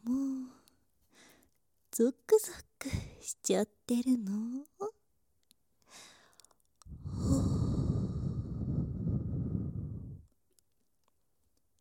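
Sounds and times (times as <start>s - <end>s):
speech: 2.0s - 4.8s
breath blown softly: 6.9s - 10.3s.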